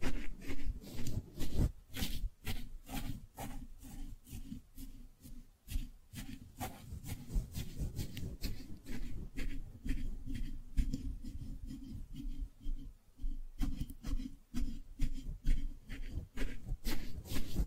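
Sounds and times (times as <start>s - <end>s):
soft brushing and squishy rubbing: 0.0s - 17.6s.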